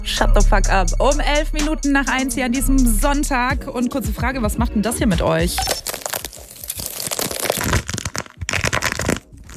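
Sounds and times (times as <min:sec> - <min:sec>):
speech: 0:00.0 - 0:05.9
stress ball coated in wax, plaster or nail polish being squeezed: 0:05.6 - 0:09.5.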